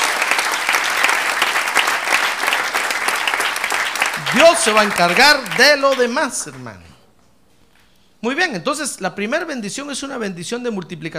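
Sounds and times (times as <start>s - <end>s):
audience applause: 0.0s - 6.7s
speech: 4.4s - 6.9s, 8.2s - 11.1s.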